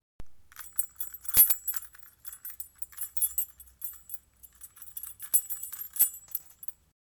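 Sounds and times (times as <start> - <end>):
keys shaking: 0.5 - 6.9.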